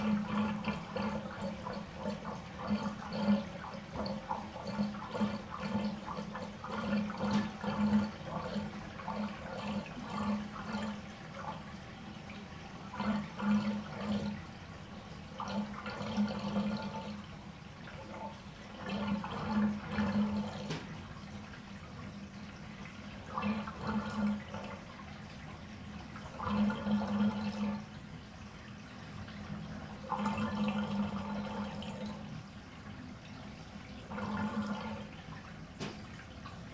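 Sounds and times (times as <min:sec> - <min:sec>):
water in a bathtub: 0:00.0 - 0:36.7.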